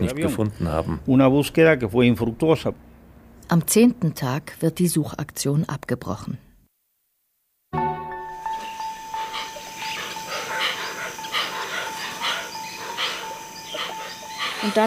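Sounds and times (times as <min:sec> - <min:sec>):
speech: 0:00.0 - 0:02.9, 0:03.5 - 0:06.5, 0:14.6 - 0:14.8
hoatzin giving a rasping wheezing call: 0:08.6 - 0:14.8.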